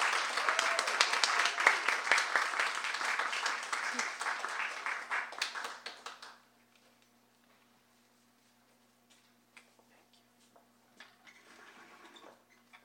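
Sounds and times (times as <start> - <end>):
audience applause welcoming two speakers at a Skylight event: 0.0 - 6.4.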